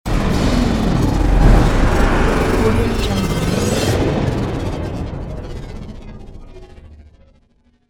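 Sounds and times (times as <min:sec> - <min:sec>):
alien technology sounds: 0:00.5 - 0:05.0.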